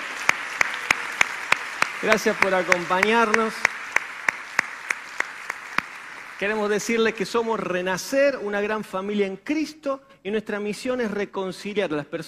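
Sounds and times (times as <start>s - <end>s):
audience applauding: 0.0s - 7.7s
speech: 2.0s - 3.7s, 6.4s - 12.2s.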